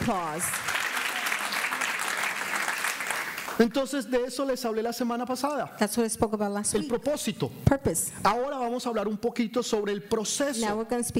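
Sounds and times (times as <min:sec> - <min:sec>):
speech: 0:00.0 - 0:00.7, 0:03.6 - 0:11.1
crowd applauding strongly: 0:00.0 - 0:03.9.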